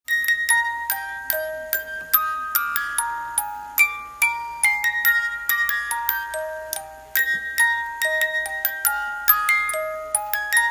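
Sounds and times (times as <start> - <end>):
music box melody: 0.1 - 10.6.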